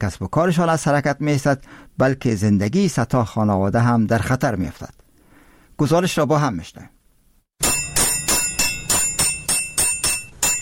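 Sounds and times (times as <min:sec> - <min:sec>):
speech: 0:00.0 - 0:05.0, 0:05.8 - 0:07.0
tinsmith's hammers striking sheet metal: 0:07.6 - 0:10.6.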